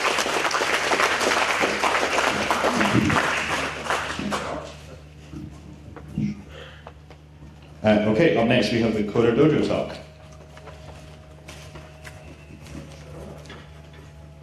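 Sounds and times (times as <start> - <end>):
crowd applauding: 0.0 - 4.9
speech: 7.8 - 10.0.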